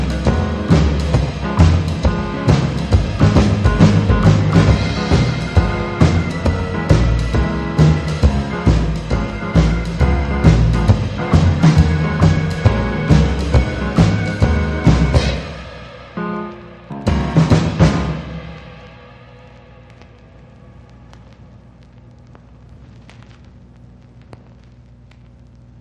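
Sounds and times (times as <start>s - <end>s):
instrumental music: 0.0s - 20.3s.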